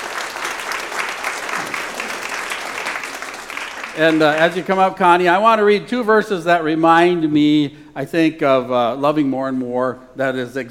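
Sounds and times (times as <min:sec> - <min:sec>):
audience applause: 0:00.0 - 0:04.8
speech: 0:04.0 - 0:10.7.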